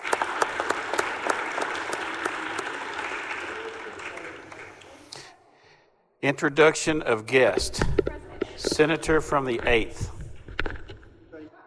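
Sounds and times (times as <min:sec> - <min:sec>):
crowd clapping welcoming guests to the Missouri Senate: 0:00.0 - 0:05.3
speech: 0:06.2 - 0:08.1, 0:08.7 - 0:10.2.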